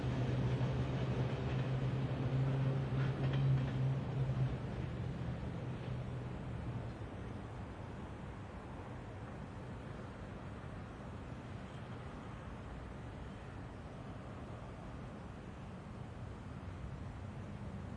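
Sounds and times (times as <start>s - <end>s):
slow train: 0.0s - 17.9s.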